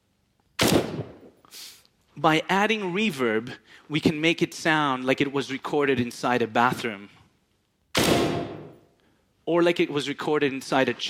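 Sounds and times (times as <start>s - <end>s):
gunshot sound effect: 0.6s - 1.4s, 7.9s - 8.8s
speech: 2.2s - 7.2s, 9.5s - 11.0s.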